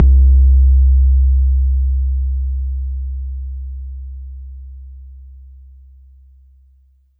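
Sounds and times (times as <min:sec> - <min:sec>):
bass drum: 0:00.0 - 0:05.7.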